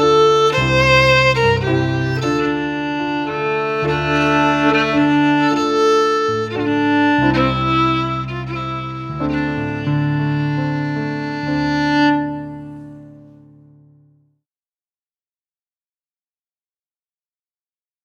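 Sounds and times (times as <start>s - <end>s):
fiddle: 0.0s - 13.6s
piano: 0.0s - 14.4s.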